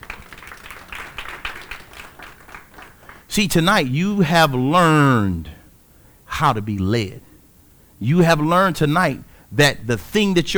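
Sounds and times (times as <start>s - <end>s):
audience clapping: 0.0s - 5.6s
speech: 3.4s - 5.5s, 6.4s - 7.3s, 8.0s - 10.5s.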